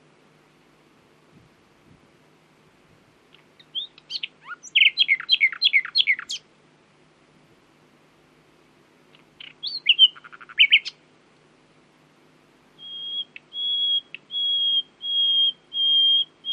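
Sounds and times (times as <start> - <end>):
common nightingale Luscinia megarhynchos singing: 3.3 - 6.5, 9.1 - 11.1, 12.7 - 16.5.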